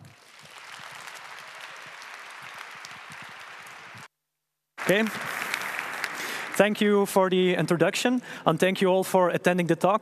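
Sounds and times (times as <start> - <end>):
audience applause: 0.0 - 4.1, 4.8 - 7.8
speech: 4.9 - 5.3, 6.6 - 10.0.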